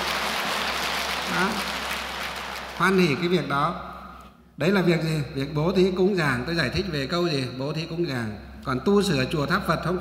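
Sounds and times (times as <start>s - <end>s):
audience applause: 0.0s - 3.0s
speech: 1.3s - 1.7s, 2.8s - 3.9s, 4.6s - 9.9s.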